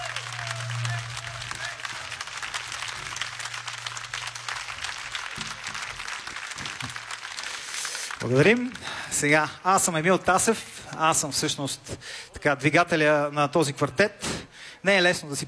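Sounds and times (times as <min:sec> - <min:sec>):
audience applause: 0:00.0 - 0:09.3
speech: 0:08.2 - 0:14.2, 0:14.8 - 0:15.4.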